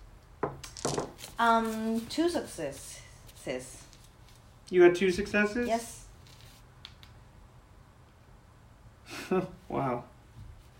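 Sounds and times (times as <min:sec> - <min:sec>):
dice clattering onto a hard surface: 0:00.4 - 0:01.4
speech: 0:01.4 - 0:03.8, 0:04.7 - 0:06.0, 0:09.3 - 0:10.1.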